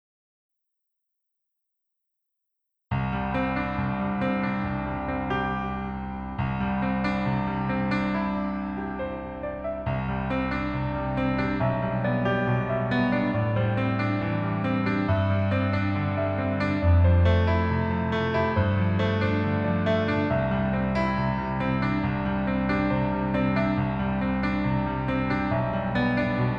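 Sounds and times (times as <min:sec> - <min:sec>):
piano melody in female key: 0:02.9 - 0:26.5.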